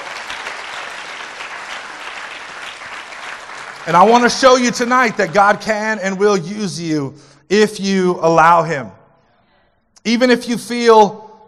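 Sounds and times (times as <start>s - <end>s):
audience applause: 0.0s - 6.0s
speech: 3.9s - 9.0s, 10.0s - 11.2s.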